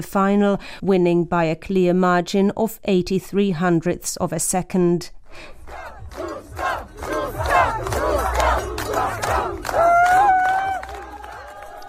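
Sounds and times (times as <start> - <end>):
speech: 0.0 - 8.3
crowd cheering at a ski race finish: 5.6 - 11.8.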